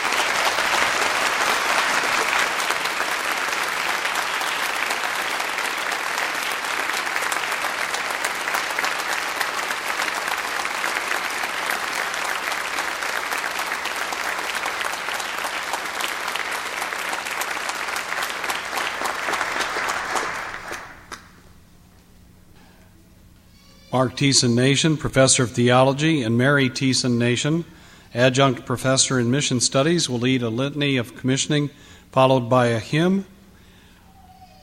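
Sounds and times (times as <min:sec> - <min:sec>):
audience applauding graduates: 0:00.0 - 0:21.4
speech: 0:24.0 - 0:33.4.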